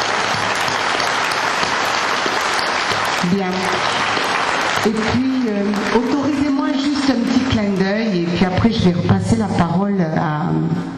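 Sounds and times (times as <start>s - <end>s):
audience applause: 0.0s - 8.3s
speech: 3.2s - 4.2s, 4.8s - 10.5s.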